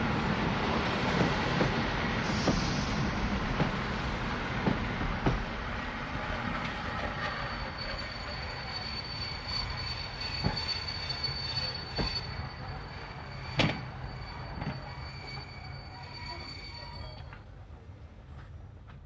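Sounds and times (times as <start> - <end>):
express train braking sharply at station: 0.1 - 17.8
thin metallic brake squeal: 7.0 - 17.5.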